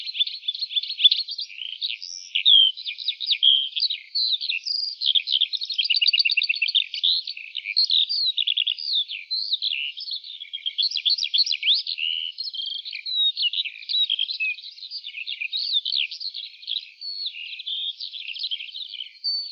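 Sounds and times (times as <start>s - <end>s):
lark singing: 0.0s - 19.5s.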